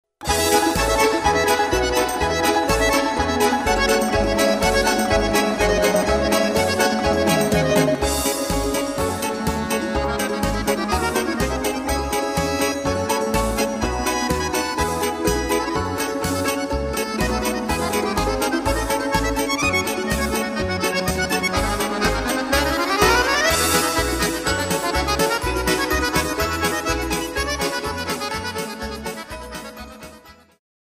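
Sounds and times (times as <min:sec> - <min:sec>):
balalaika: 0:00.2 - 0:30.6.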